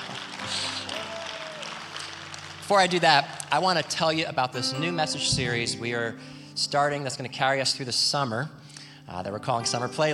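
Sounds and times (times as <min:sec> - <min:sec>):
audience clapping: 0:00.0 - 0:04.6
speech: 0:02.7 - 0:10.1.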